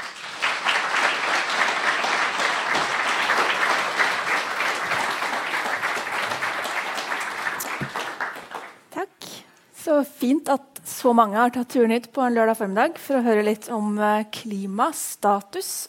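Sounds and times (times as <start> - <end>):
audience applause: 0.0 - 8.8
speech: 9.9 - 15.8.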